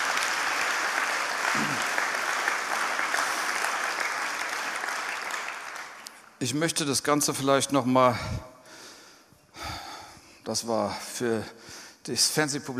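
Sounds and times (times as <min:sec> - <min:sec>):
audience applause: 0:00.0 - 0:06.2
speech: 0:06.4 - 0:08.5, 0:10.5 - 0:12.7.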